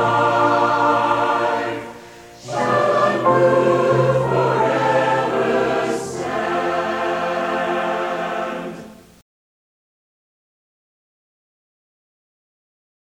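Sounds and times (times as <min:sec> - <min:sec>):
choir singing a hymnal chorale: 0:00.0 - 0:09.2.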